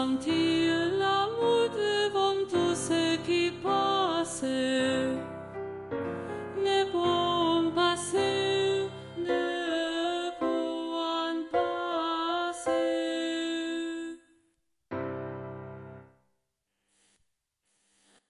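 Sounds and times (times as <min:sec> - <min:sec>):
soprano singing: 0:00.0 - 0:14.3.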